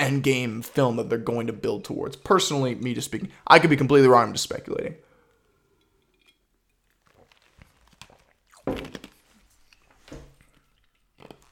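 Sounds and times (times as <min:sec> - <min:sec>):
speech: 0:00.0 - 0:05.1
person chewing ice: 0:06.8 - 0:11.5.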